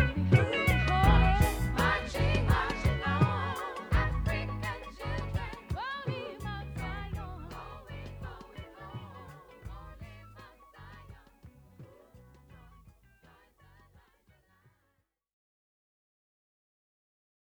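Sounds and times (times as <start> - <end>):
chant: 0.0 - 12.7.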